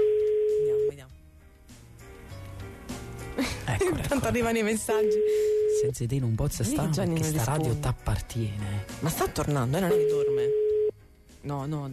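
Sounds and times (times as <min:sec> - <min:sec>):
telephone ringing tone of a live radio call: 0:00.0 - 0:01.0, 0:05.0 - 0:05.9, 0:09.9 - 0:11.0
speech: 0:03.8 - 0:10.6, 0:11.4 - 0:11.9.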